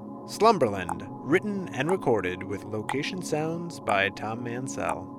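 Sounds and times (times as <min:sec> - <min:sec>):
speech: 0:00.3 - 0:05.1
countdown timer ticking: 0:00.8 - 0:01.0, 0:01.8 - 0:02.1, 0:02.8 - 0:03.2, 0:03.8 - 0:04.2.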